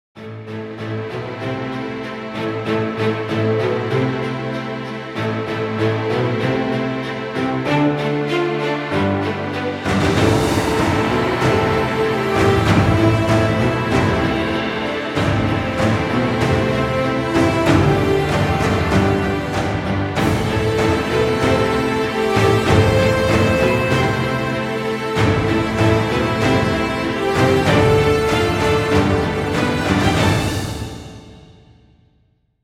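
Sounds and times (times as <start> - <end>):
heroic epic trailer music: 0.2 - 31.9.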